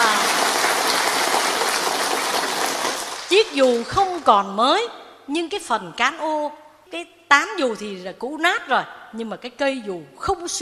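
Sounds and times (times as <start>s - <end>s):
audience clapping: 0.0s - 4.2s
speech: 3.4s - 10.6s.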